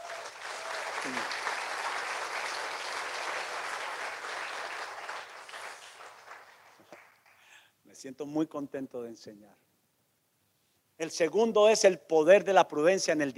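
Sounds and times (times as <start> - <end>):
audience applause: 0.0 - 7.3
speech: 1.0 - 1.5, 8.0 - 9.7, 11.0 - 13.3.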